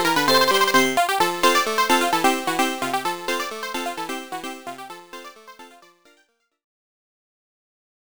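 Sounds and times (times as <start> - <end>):
hurry up music: 0.0 - 5.8.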